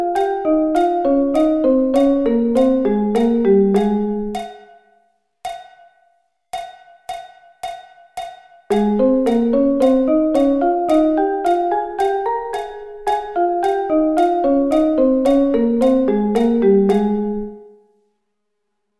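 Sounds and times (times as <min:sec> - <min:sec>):
thirds in A flat: 0:00.0 - 0:04.7, 0:08.7 - 0:17.8.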